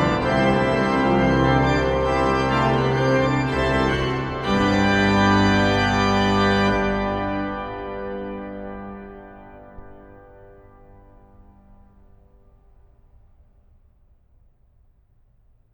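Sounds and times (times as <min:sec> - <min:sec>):
organ fughetta: 0:00.0 - 0:11.9.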